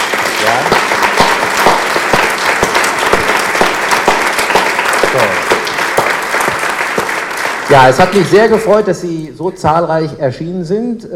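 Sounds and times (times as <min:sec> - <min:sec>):
audience applause: 0:00.0 - 0:09.0
speech: 0:07.7 - 0:11.1.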